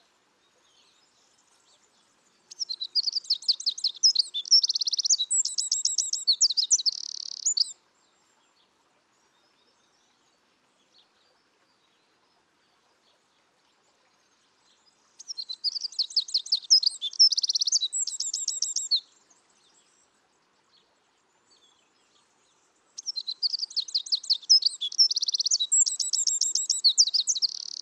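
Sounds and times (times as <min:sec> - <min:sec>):
Eurasian wren singing trills: 0:02.5 - 0:07.7, 0:15.2 - 0:19.0, 0:23.0 - 0:27.8.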